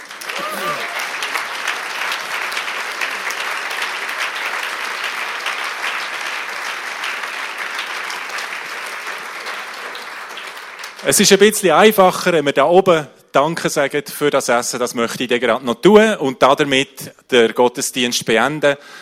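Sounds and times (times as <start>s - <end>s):
audience applause: 0.0s - 11.5s
speech: 11.0s - 19.0s.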